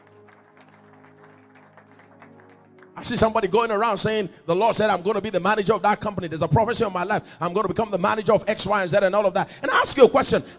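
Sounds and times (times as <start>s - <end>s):
crowd clapping hands: 0.0s - 3.9s
speech: 3.0s - 10.5s.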